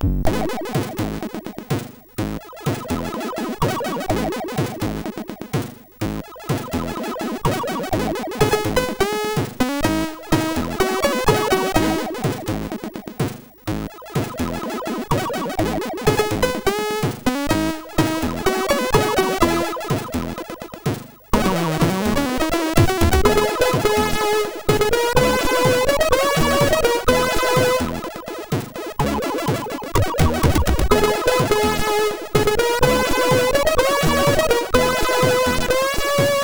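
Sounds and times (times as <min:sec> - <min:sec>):
MOS6581 SID chip music: 0:00.3 - 0:36.4.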